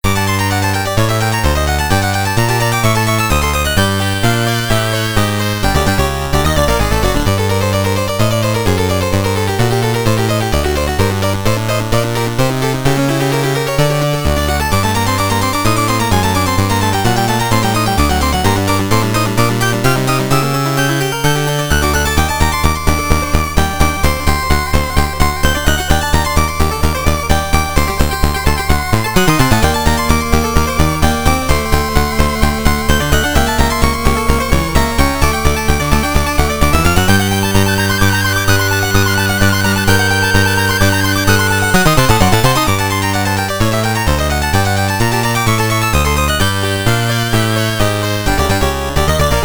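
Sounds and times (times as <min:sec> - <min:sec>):
clock tower stage game music: 0:00.0 - 0:49.4.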